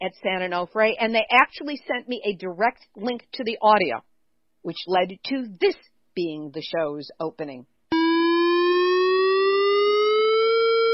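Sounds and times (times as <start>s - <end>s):
speech: 0.0s - 7.7s
warning siren wailing: 7.9s - 10.9s.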